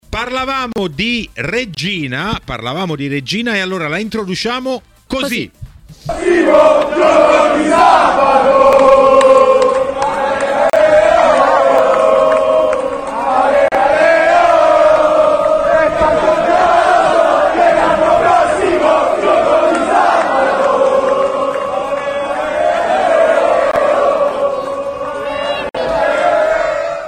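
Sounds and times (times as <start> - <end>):
speech: 0.2 - 9.4
large crowd of football fans chanting in unison: 6.1 - 27.0.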